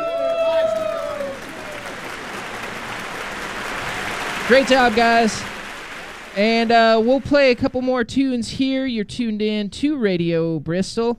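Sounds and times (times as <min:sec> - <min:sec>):
audience applause: 0:00.0 - 0:07.9
speech: 0:04.5 - 0:05.5, 0:06.4 - 0:11.1.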